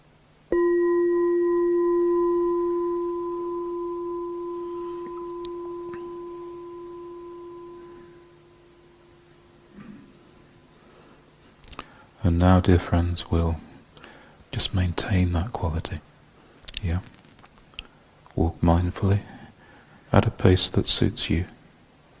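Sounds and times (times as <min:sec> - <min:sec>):
struck meditation bell ringing: 0:00.5 - 0:10.5
speech: 0:12.3 - 0:13.7, 0:14.6 - 0:16.1, 0:16.8 - 0:17.2, 0:18.4 - 0:19.4, 0:20.1 - 0:21.6.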